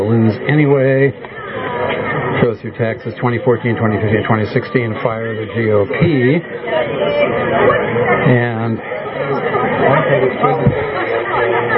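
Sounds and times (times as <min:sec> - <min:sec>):
protest crowd chatter: 0:00.0 - 0:11.7
speech: 0:00.3 - 0:01.3, 0:01.9 - 0:11.0.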